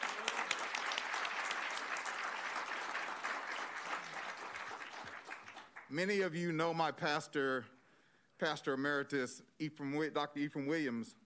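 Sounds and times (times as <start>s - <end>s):
crowd applause: 0.0s - 5.9s
speech: 5.9s - 7.8s, 8.4s - 11.2s.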